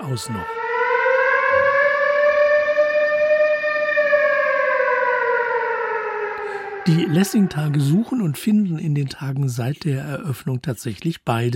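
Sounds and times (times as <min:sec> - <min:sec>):
air raid siren wailing: 0:00.0 - 0:08.7
speech: 0:00.1 - 0:00.6, 0:06.9 - 0:11.5.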